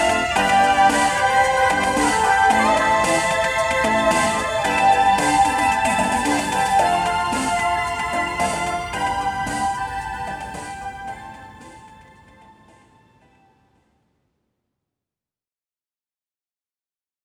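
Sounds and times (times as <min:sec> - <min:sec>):
laptop music: 0:00.0 - 0:13.1.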